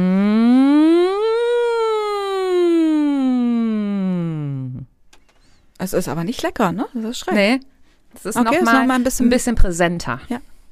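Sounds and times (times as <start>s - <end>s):
voice imitating a siren: 0.0s - 4.9s
speech: 5.8s - 10.5s.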